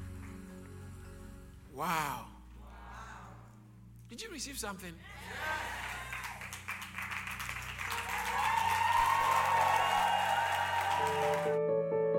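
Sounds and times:
speech: 1.8 - 2.4, 4.1 - 5.8
crowd applauding: 5.2 - 11.6.

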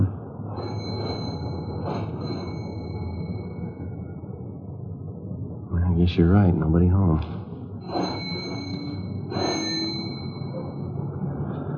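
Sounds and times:
low rumbling background: 0.0 - 11.7
doorbell chiming: 0.6 - 3.7, 7.8 - 11.0
speech: 6.0 - 8.0.

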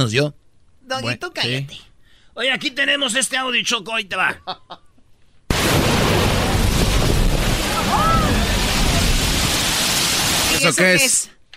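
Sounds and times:
speech: 0.0 - 4.8, 10.6 - 11.4
sea blasting through La Bufadora blowhole: 5.5 - 10.6
surf and spray roaring: 5.5 - 10.8.

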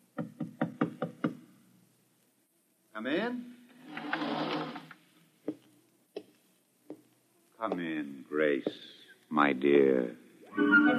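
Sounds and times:
knocking on a door: 0.2 - 1.4
speech: 3.0 - 4.4, 7.6 - 10.9.

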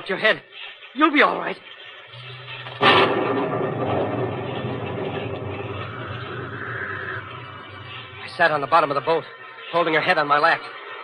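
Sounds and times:
speech: 0.0 - 2.4, 8.4 - 10.8
thunder: 2.7 - 8.3.

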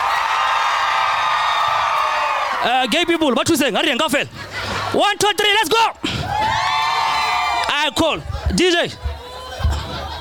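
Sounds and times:
crowd of women screaming and cheering: 0.0 - 3.3, 6.2 - 10.1
speech: 2.6 - 6.4, 7.8 - 9.1
laughter: 3.2 - 6.4, 8.1 - 10.1.

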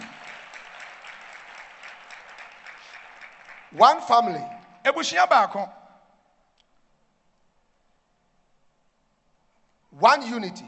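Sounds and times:
church congregation clapping: 0.0 - 5.6
speech: 3.7 - 5.8, 10.0 - 10.6.

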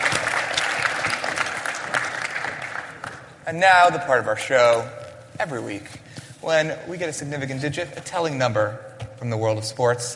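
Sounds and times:
audience clapping at a live show: 0.0 - 3.4
speech: 3.5 - 10.1.

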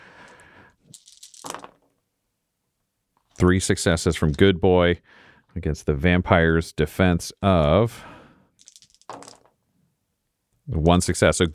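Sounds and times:
six dice rolling: 0.3 - 2.0, 8.6 - 9.6
speech: 3.4 - 8.1, 10.7 - 11.5.

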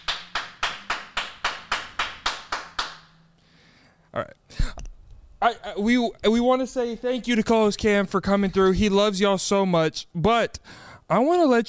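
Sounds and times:
round of applause: 0.0 - 3.1
speech: 4.1 - 4.7, 5.4 - 11.6.

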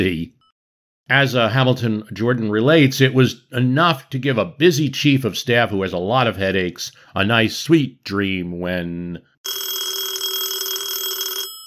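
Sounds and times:
speech: 0.0 - 0.4, 1.1 - 9.6
1979 telephone electric bell ringing: 9.4 - 11.6.

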